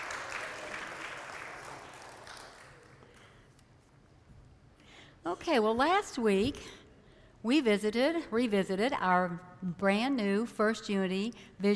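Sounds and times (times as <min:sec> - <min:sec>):
church congregation applauding to welcome a member back: 0:00.0 - 0:03.4
speech: 0:05.2 - 0:06.8, 0:07.4 - 0:11.7.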